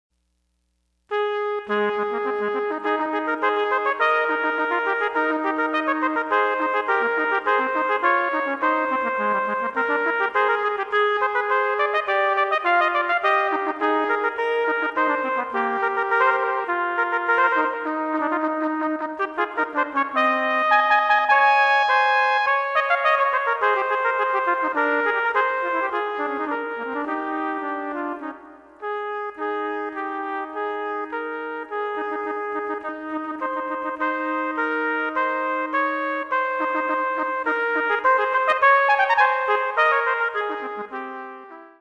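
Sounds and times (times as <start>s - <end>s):
two trumpets playing: 1.1s - 41.8s.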